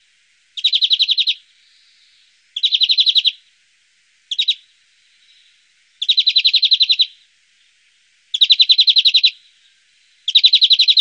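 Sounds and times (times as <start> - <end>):
greenfinch: 0.6 - 3.4, 4.3 - 7.2, 8.3 - 10.9.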